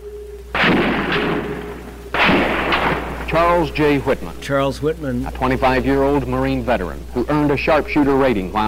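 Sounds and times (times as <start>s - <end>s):
gunfire from a sniper: 0.6s - 4.3s
speech: 3.4s - 8.6s.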